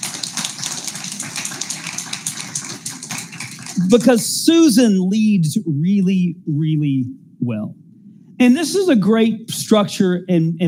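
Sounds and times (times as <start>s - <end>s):
audience applause: 0.0s - 4.1s
speech: 3.8s - 7.8s, 8.4s - 10.6s.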